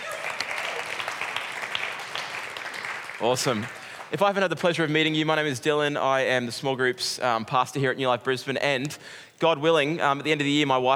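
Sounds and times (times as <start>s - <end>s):
audience applause: 0.0s - 4.2s
speech: 3.2s - 10.9s.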